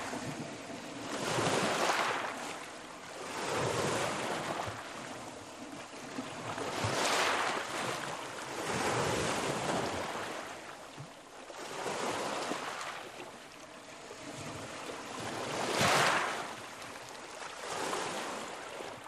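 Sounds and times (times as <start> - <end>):
water lapping: 0.0 - 19.0.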